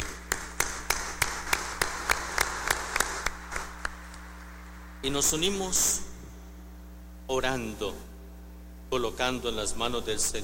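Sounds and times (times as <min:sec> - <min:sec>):
audience applause: 0:00.0 - 0:04.1
speech: 0:05.0 - 0:06.1, 0:07.3 - 0:08.1, 0:08.9 - 0:10.4.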